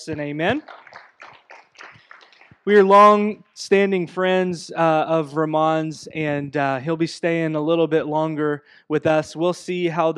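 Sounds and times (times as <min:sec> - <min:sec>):
speech: 0:00.0 - 0:01.3, 0:02.6 - 0:10.1
audience clapping in rhythm: 0:00.0 - 0:03.2.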